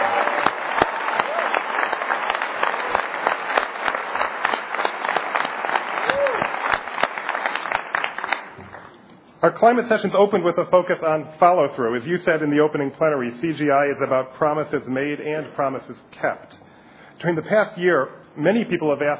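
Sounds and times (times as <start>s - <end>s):
applause: 0.0s - 9.0s
speech: 9.5s - 16.6s, 17.2s - 19.1s.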